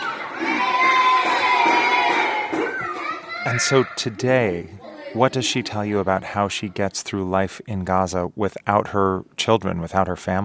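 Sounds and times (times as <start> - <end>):
children shouting and squealing while playing in pool: 0.0 - 7.0
speech: 3.4 - 10.4.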